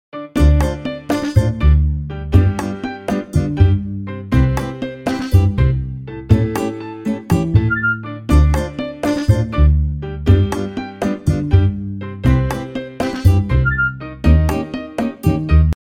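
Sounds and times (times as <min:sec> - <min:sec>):
sunny salsa music: 0:00.4 - 0:15.2.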